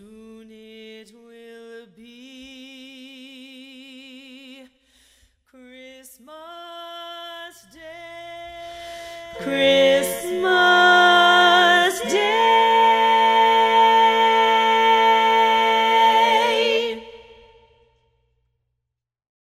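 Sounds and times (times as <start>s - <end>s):
baritone voice: 7.7s - 17.4s.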